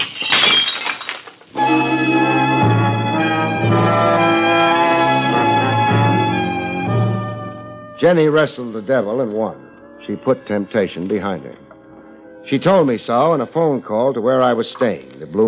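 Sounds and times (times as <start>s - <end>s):
dish shattering: 0.0s - 1.6s
instrumental music: 1.5s - 15.4s
speech: 8.0s - 11.6s, 12.4s - 15.4s.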